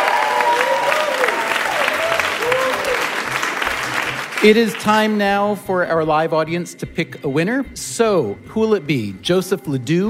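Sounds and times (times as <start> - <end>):
live show audience applause for guests: 0.0 - 5.2
speech: 4.4 - 10.0.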